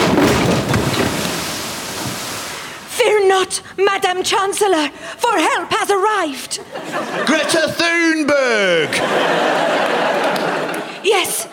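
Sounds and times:
wind and water rushing around a sailing ship at sea: 0.0s - 3.0s
speech: 3.4s - 10.3s, 11.0s - 11.5s
laughter: 6.6s - 11.5s.

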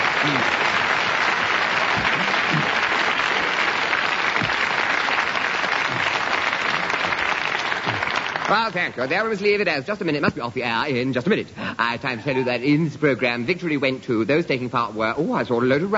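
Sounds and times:
audience applause: 0.0s - 9.4s
speech: 8.5s - 15.9s.

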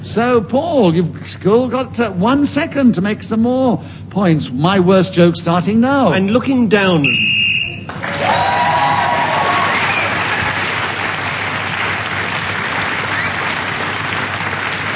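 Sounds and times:
speech: 0.2s - 7.4s
short shrill whistle blast ending the round: 7.0s - 7.9s
cheering: 7.9s - 14.9s
loud applause: 7.9s - 14.9s.

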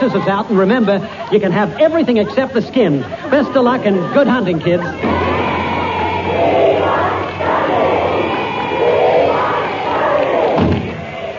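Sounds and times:
large crowd cheering outside: 0.0s - 2.3s, 3.0s - 11.3s
speech: 0.0s - 5.3s
laughter: 0.0s - 10.5s
dull thump: 10.6s - 11.0s.

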